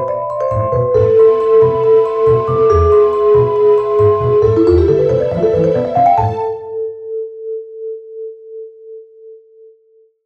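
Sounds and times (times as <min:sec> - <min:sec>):
vibraphone music: 0:00.0 - 0:07.2.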